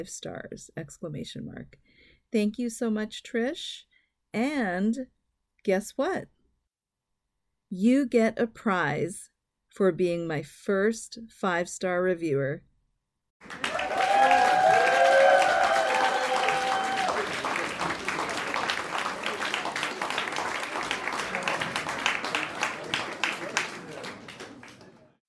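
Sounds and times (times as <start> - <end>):
speech: 0.0 - 6.4, 7.7 - 12.7, 13.4 - 13.7
clapping laugh track: 13.4 - 25.1.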